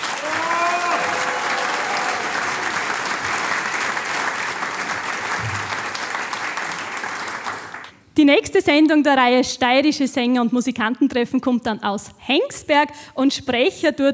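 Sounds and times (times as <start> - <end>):
audience applause: 0.0 - 8.0
speech: 8.2 - 14.1.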